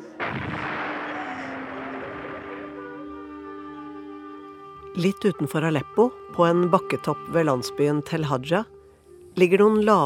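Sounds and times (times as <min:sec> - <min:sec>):
intense bombing and artillery shelling: 0:00.2 - 0:03.1
speech: 0:05.0 - 0:08.7, 0:09.4 - 0:10.0.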